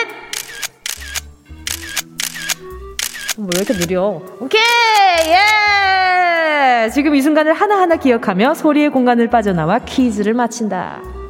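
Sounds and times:
camera shutter clicking in burst mode: 0:00.3 - 0:03.9, 0:04.6 - 0:05.6
speech: 0:03.4 - 0:05.8, 0:06.6 - 0:11.2.

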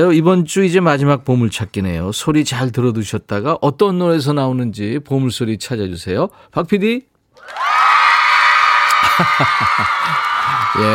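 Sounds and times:
speech: 0:00.0 - 0:07.7, 0:09.2 - 0:10.9
large crowd cheering: 0:07.4 - 0:10.9
laughter: 0:08.9 - 0:10.9.

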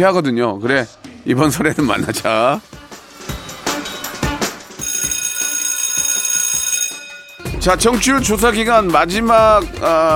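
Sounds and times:
speech: 0:00.0 - 0:02.8, 0:07.6 - 0:10.1
quiz show golden bell ringing: 0:04.8 - 0:08.0.

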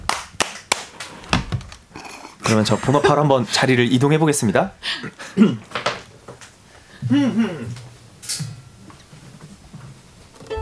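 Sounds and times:
sharp hand claps: 0:00.0 - 0:01.1
speech: 0:02.5 - 0:05.8, 0:07.1 - 0:08.4.

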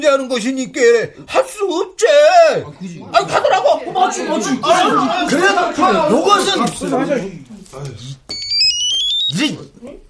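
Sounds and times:
speech: 0:00.0 - 0:08.2, 0:09.3 - 0:10.0
laughter: 0:03.1 - 0:06.2
loud phone ringtone: 0:08.3 - 0:09.4.

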